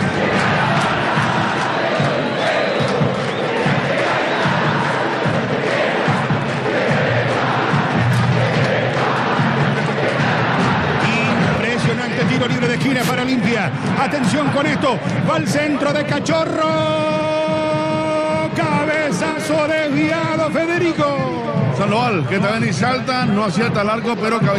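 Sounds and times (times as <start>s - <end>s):
football fans chanting in stadium stand: 0.0s - 20.1s
speech: 13.7s - 17.2s, 18.6s - 24.5s.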